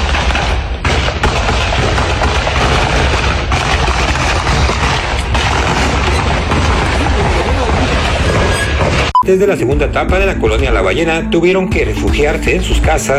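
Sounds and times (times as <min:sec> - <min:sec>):
gunfire detonations: 0:00.0 - 0:09.2
speech: 0:09.3 - 0:13.1.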